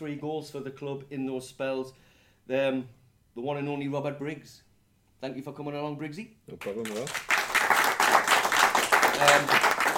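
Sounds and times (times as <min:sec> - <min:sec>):
speech: 0:00.0 - 0:07.3, 0:09.2 - 0:09.7
audience applause: 0:06.9 - 0:09.9.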